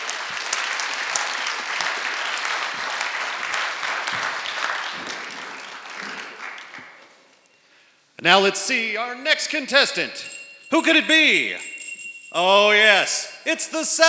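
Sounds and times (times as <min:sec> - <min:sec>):
audience applause for the UPS Man contestant: 0:00.0 - 0:07.4
speech: 0:08.2 - 0:11.7, 0:12.3 - 0:14.0.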